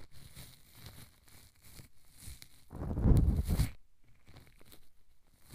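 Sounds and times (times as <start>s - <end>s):
ear cleaning sounds: 2.7s - 3.7s.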